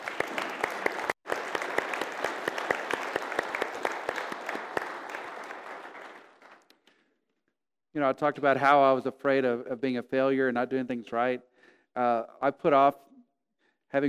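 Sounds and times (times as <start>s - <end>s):
audience applause: 0.0s - 6.7s
speech: 8.0s - 13.0s.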